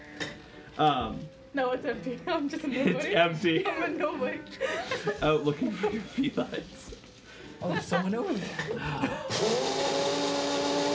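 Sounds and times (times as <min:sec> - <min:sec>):
speech: 0:00.8 - 0:06.9, 0:07.6 - 0:10.1
coffee maker brewing in a ship's galley: 0:08.5 - 0:10.9.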